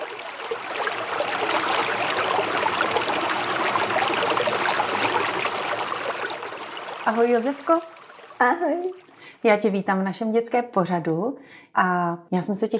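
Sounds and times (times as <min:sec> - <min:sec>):
flowing river water: 0:00.0 - 0:09.4
speech: 0:07.1 - 0:12.7.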